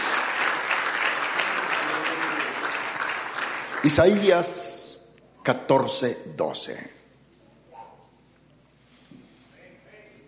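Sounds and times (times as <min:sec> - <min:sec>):
audience applause: 0:00.0 - 0:04.5
speech: 0:03.8 - 0:04.7, 0:05.5 - 0:07.0.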